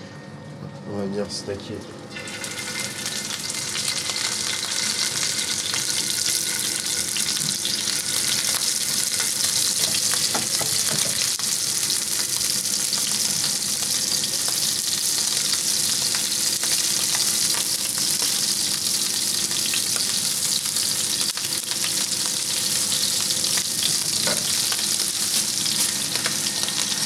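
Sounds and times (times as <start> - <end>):
speech: 0.9 - 2.3
food sizzling in a very hot frying pan: 2.1 - 27.0.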